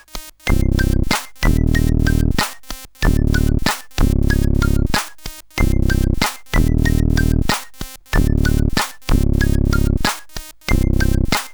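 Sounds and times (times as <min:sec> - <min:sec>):
rap music: 0:00.5 - 0:11.5.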